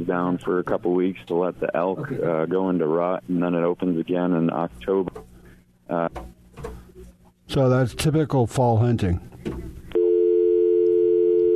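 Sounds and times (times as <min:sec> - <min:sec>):
speech: 0:00.0 - 0:05.3, 0:05.9 - 0:06.3, 0:07.5 - 0:09.8
telephone busy tone: 0:09.9 - 0:11.5.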